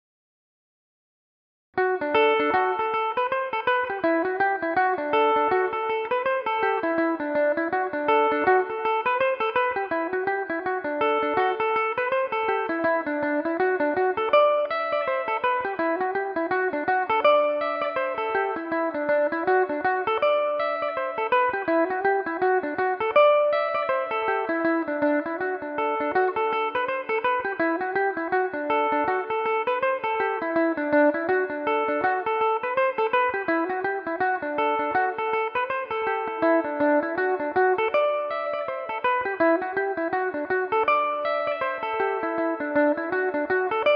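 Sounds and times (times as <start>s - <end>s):
Irish mandolin in D mixolydian: 1.8s - 43.9s.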